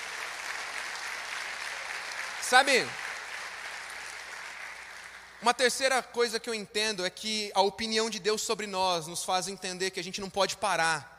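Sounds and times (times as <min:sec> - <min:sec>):
audience applause: 0:00.0 - 0:05.4
speech: 0:02.5 - 0:03.0, 0:05.4 - 0:11.1.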